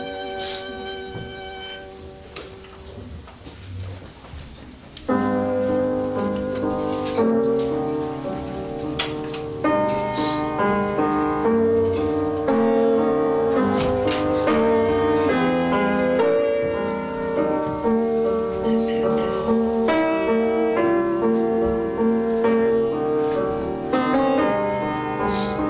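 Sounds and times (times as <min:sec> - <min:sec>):
violin in a prelude: 0:00.0 - 0:02.2
piano in a prelude: 0:00.0 - 0:25.6.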